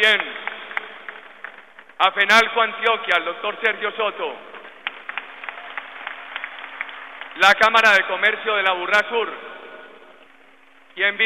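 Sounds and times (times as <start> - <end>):
speech: 0.0 - 0.4, 2.0 - 4.5, 7.4 - 9.5, 11.0 - 11.2
scattered hand claps at a ceremony: 0.0 - 2.0, 4.5 - 7.5.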